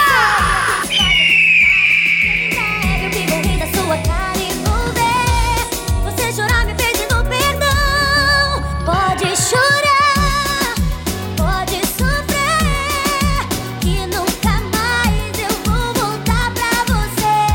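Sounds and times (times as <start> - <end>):
man letting out a long loud high-pitched yell: 0.0 - 0.9
pounding electronic dance music with thumping bass beat at a live DJ event in Salinas: 0.0 - 17.5.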